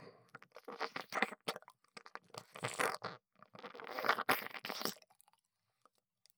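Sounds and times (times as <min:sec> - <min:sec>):
gentle ear licking on left ear: 0:00.3 - 0:05.3.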